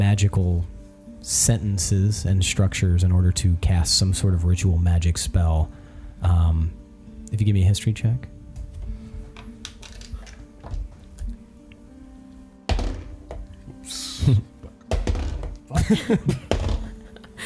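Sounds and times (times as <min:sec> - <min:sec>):
speech: 0:00.0 - 0:08.4, 0:14.3 - 0:14.5, 0:15.9 - 0:16.5
dice rolled onto a table: 0:09.6 - 0:10.8
laughter: 0:15.7 - 0:17.4.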